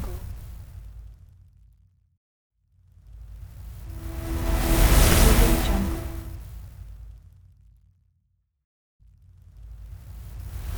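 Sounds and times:
transition and movement whoosh: 3.8s - 6.5s.

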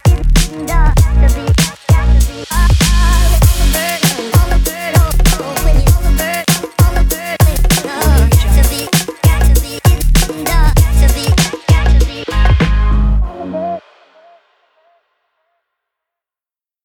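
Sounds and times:
hip hop drum kit: 0.0s - 12.9s.

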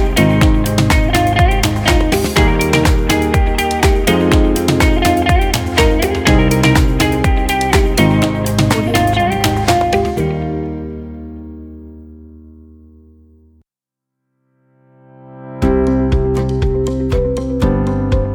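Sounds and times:
upbeat inspiring corporate music: 0.0s - 11.3s, 15.6s - 18.3s.

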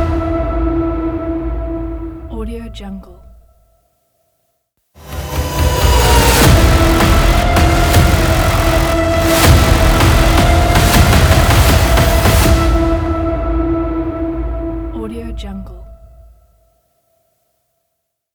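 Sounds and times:
trailer logo sting: 0.0s - 2.7s, 5.0s - 16.4s.

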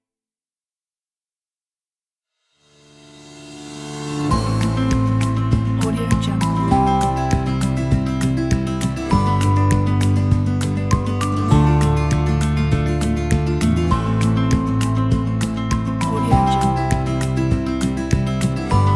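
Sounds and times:
warm sentimental acoustic folk music: 3.9s - 18.9s.

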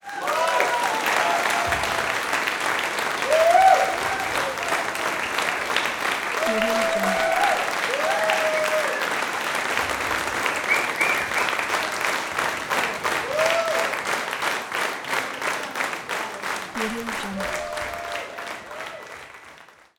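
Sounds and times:
applause: 0.0s - 19.9s.

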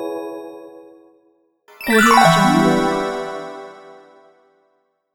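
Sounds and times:
item pickup sound: 1.7s - 4.2s.

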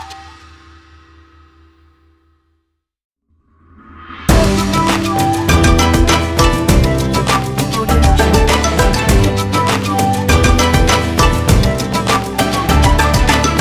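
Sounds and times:
happy Japan intro logo jingle: 4.3s - 13.5s.

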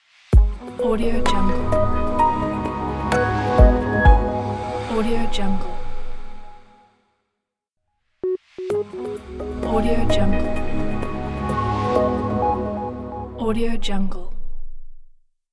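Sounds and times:
ambient logo music: 0.7s - 6.7s, 8.6s - 13.4s.

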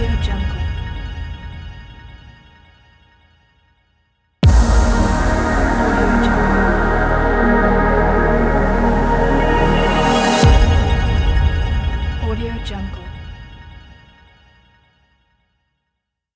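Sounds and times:
science and technology logo sting: 4.4s - 13.7s.

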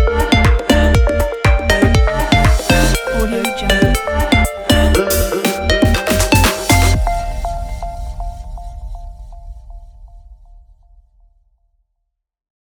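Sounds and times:
commercial background deep house music: 0.0s - 9.9s.

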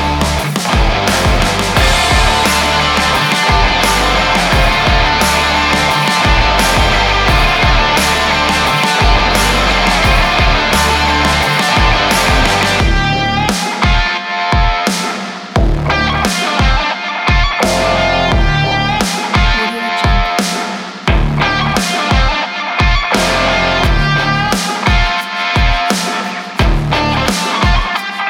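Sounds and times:
stylish sport indie rock music: 0.0s - 28.2s.

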